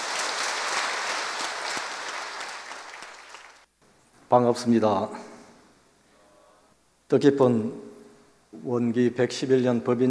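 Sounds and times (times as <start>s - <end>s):
audience applause: 0.0s - 3.7s
speech: 4.3s - 5.3s, 7.1s - 7.9s, 8.5s - 10.0s.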